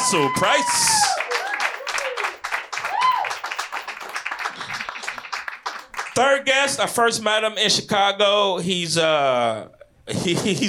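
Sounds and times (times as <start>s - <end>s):
audience applause and clapping: 0.0s - 6.2s
speech: 0.1s - 1.1s, 6.2s - 10.6s.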